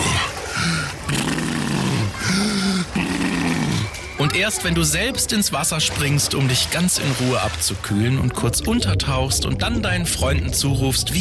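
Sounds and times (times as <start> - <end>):
walrus-like breathing of swimming seniors: 0.0 - 4.0
speech: 4.3 - 11.1.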